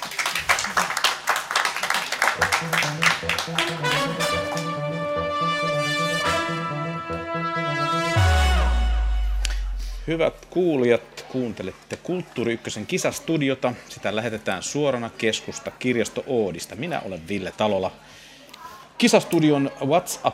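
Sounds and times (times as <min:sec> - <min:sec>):
audience applause: 0:00.0 - 0:05.0
speech: 0:02.4 - 0:04.7, 0:10.1 - 0:18.2, 0:19.0 - 0:20.3
melodic jingle with sustained tones: 0:02.4 - 0:10.4.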